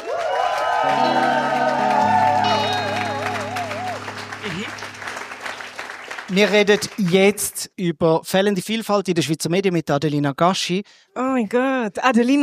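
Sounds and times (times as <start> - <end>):
live audience applauding and cheering: 0.0 - 7.6
speech: 0.8 - 1.4, 6.3 - 12.4.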